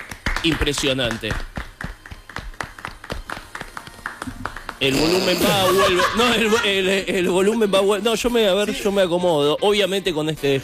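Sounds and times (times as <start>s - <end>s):
few people clapping: 0.0s - 5.4s
speech: 0.4s - 1.5s, 4.8s - 10.6s
laughter: 4.8s - 9.0s.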